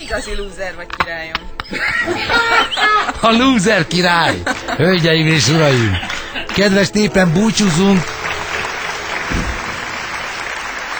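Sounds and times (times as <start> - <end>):
laughter: 0.0 - 10.9
speech: 0.1 - 8.2
audience applause: 1.7 - 10.9.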